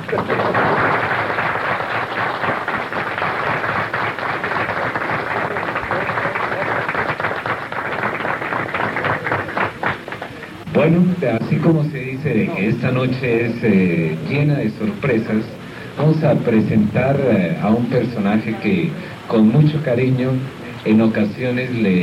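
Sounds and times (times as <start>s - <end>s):
audience applause: 0.0s - 10.6s
speech: 10.8s - 22.0s.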